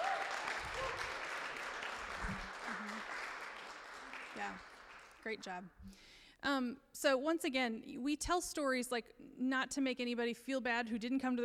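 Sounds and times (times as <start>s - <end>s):
audience applause: 0.0s - 5.2s
speech: 4.5s - 11.4s.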